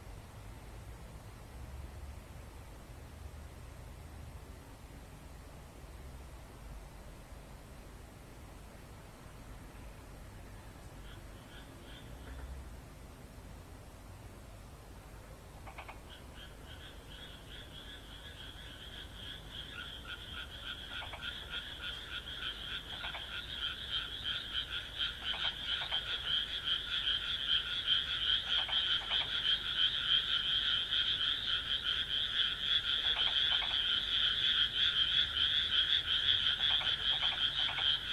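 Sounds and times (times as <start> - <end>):
steady background hiss: 0.0 - 38.1
frog croaking: 11.0 - 12.6, 15.6 - 38.1.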